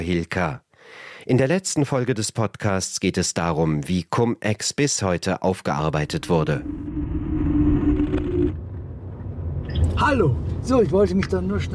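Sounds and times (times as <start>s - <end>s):
speech: 0.0s - 7.4s, 10.0s - 11.7s
sustained tonal whine: 5.9s - 9.7s
road and engine rumble inside a moving car: 6.1s - 11.7s.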